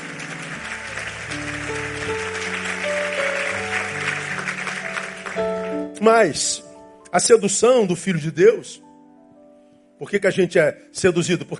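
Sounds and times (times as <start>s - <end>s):
audience applauding: 0.0s - 6.0s
speech: 6.0s - 8.9s, 10.0s - 11.5s.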